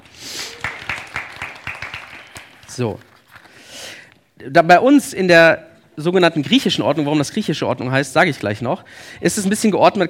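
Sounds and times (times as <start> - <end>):
audience applause: 0.0 - 2.8
speech: 2.8 - 3.1, 4.4 - 10.0.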